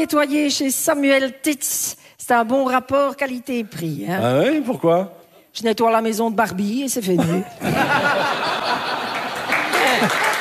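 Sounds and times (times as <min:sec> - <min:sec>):
speech: 0:00.0 - 0:09.0
laughter and voices: 0:07.2 - 0:10.3
audience applauding: 0:08.6 - 0:10.3.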